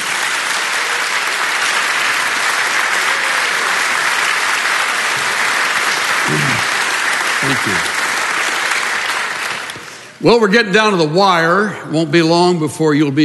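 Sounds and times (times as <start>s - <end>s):
audience applause welcoming a guest speaker: 0.0s - 10.2s
speech: 7.6s - 7.9s, 10.2s - 13.2s.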